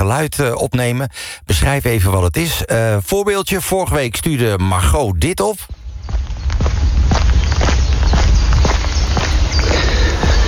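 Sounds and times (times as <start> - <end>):
speech: 0.0 - 7.0
footsteps walking along an outdoor path in polder: 5.6 - 10.4
low rumble of wind in open country: 5.7 - 10.4.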